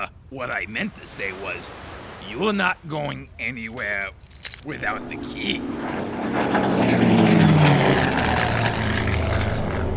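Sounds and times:
speech: 0.3 - 8.1
seaplane propeller engine roaring at takeoff: 4.3 - 9.9.

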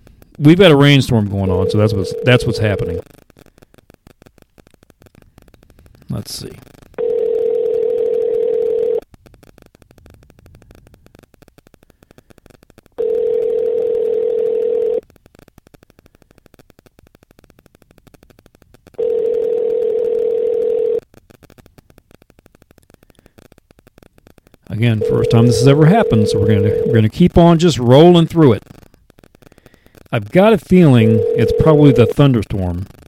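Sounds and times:
quiet line noise: 0.0 - 33.0
speech: 0.4 - 3.2, 6.2 - 6.8, 24.8 - 28.7, 30.2 - 33.0
telephone dial tone on an outgoing call: 1.4 - 3.0, 7.0 - 9.0, 13.0 - 15.0, 19.0 - 21.0, 24.8 - 27.2, 30.7 - 32.3.

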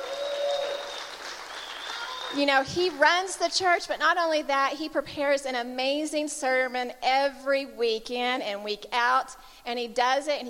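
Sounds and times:
audience clapping: 0.0 - 3.4
speech: 2.3 - 10.4.

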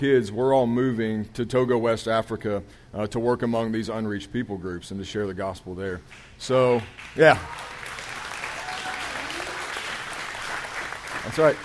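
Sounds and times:
speech: 0.0 - 7.7, 11.3 - 11.6
audience applause: 6.8 - 11.6.

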